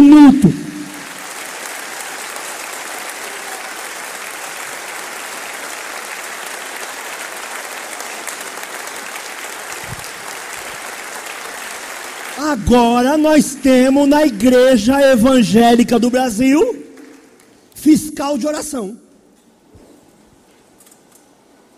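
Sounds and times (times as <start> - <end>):
audience applause: 0.0 - 13.0, 16.9 - 17.7
speech: 12.6 - 16.8, 18.2 - 19.0.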